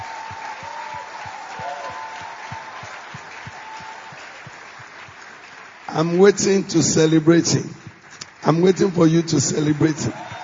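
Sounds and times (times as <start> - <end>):
regular low thumping beat: 0.0 - 5.3
large crowd clapping in applause: 0.0 - 10.4
speech: 5.9 - 7.8, 8.4 - 10.2.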